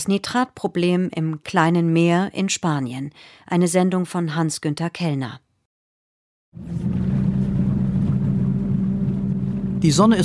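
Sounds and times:
speech: 0.0s - 5.4s, 6.5s - 7.0s, 9.8s - 10.2s
small research boat of the University of Murcia heading out of Lopagan harbor onto the Mar Menor: 6.6s - 10.2s.

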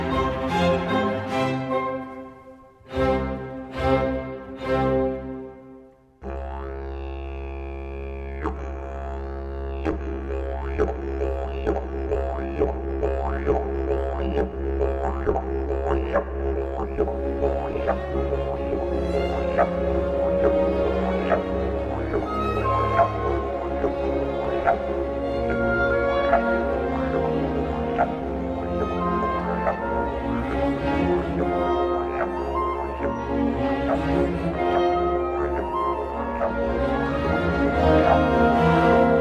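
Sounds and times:
orchestral strings and winds playing sustained chords: 0.0s - 6.2s, 17.1s - 39.1s
didgeridoo droning on a deep buzzing low note: 6.2s - 39.1s.

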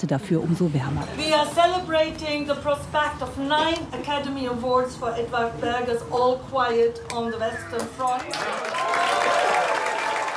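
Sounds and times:
speech: 0.0s - 9.4s
crowd applauding at a reception: 7.7s - 10.3s.

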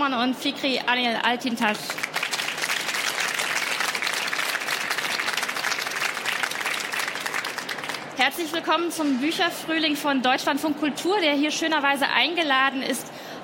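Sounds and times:
speech: 0.0s - 2.2s, 8.2s - 13.4s
audience applause: 1.9s - 8.2s.

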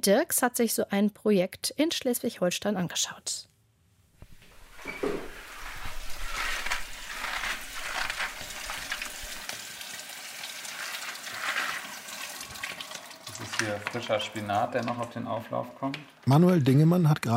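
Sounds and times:
speech: 0.0s - 3.5s, 13.6s - 17.3s
tap water running in a shared kitchen: 4.2s - 15.2s.

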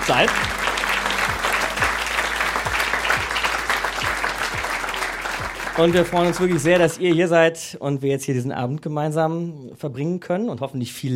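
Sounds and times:
live audience applause: 0.0s - 7.3s
speech: 0.1s - 0.5s, 5.8s - 11.1s.

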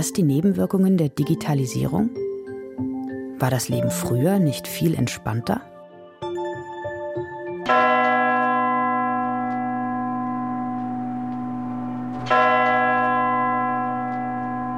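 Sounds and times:
speech: 0.0s - 2.2s, 2.8s - 5.7s
tower clock bell striking the hour: 7.3s - 14.7s.

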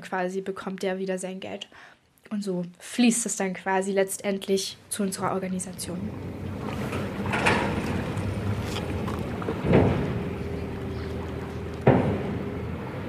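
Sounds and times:
speech: 0.0s - 7.5s
faint even hum: 4.6s - 13.0s
wind at the ferry landing in Kleinschachwitz: 5.0s - 13.0s
water washing around a boat at the ferry landing in Kleinschachwitz: 5.7s - 13.0s.

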